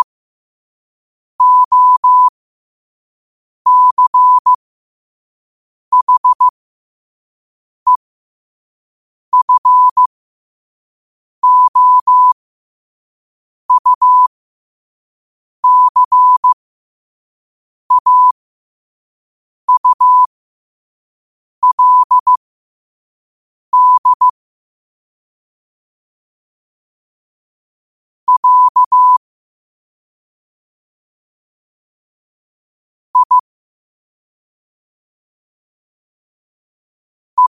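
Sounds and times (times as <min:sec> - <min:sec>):
morse code at 5 wpm: 0:01.4 - 0:02.3, 0:03.7 - 0:04.6, 0:05.9 - 0:06.5, 0:09.4 - 0:10.1, 0:11.4 - 0:12.4, 0:13.7 - 0:14.3, 0:15.6 - 0:16.6, 0:17.9 - 0:18.4, 0:19.7 - 0:20.3, 0:21.6 - 0:22.4, 0:23.7 - 0:24.4, 0:28.3 - 0:29.2, 0:33.2 - 0:33.4.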